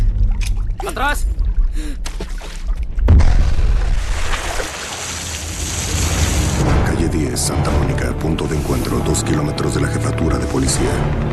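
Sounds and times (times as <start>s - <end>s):
speech: 0.9s - 2.3s, 7.1s - 11.3s
churning water and spray: 2.2s - 6.9s
video game grenade exploding in a swimming pool: 3.0s - 4.1s.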